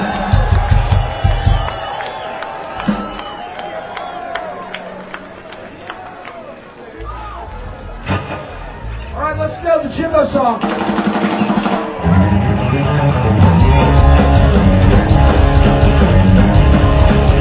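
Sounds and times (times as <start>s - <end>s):
audience cheering a performer's welcome at a show in Kansas City: 0.0s - 10.0s, 11.0s - 17.3s
crowd chatter: 0.0s - 17.3s
speech: 10.2s - 11.2s.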